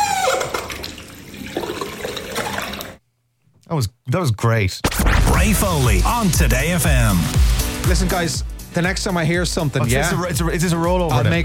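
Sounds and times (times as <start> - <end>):
squeaky bathroom tap turning: 0.0 - 0.8
speech: 3.7 - 11.4.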